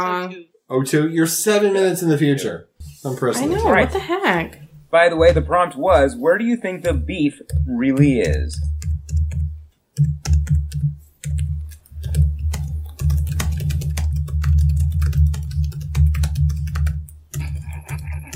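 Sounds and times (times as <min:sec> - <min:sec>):
speech: 0:00.0 - 0:09.2
typing on a computer keyboard: 0:10.0 - 0:18.3.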